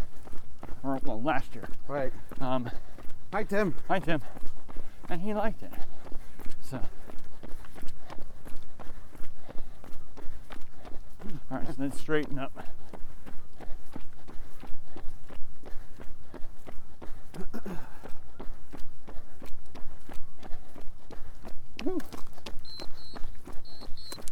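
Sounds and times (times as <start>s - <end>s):
people's footsteps walking: 0.0s - 24.3s
speech: 0.8s - 4.5s, 5.1s - 5.9s, 6.7s - 7.0s, 11.2s - 12.8s
high chirp: 22.6s - 24.3s.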